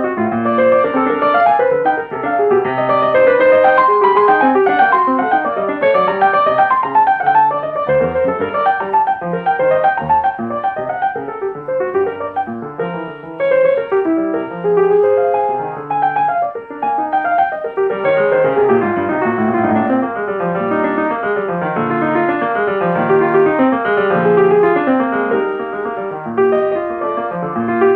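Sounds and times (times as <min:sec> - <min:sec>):
prelude in E flat major: 0:00.0 - 0:27.9.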